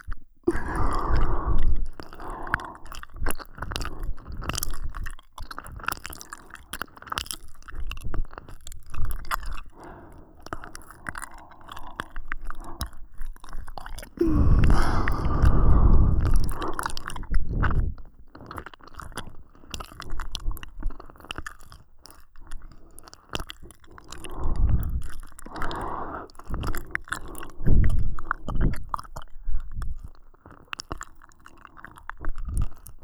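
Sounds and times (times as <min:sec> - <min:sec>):
ear licking ASMR in both ears: 0:00.0 - 0:05.1, 0:08.5 - 0:21.7, 0:22.7 - 0:30.1.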